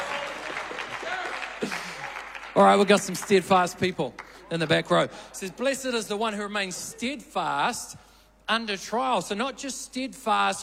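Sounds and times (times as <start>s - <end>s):
audience clapping from back row: 0.0s - 4.8s
speech: 2.6s - 10.6s.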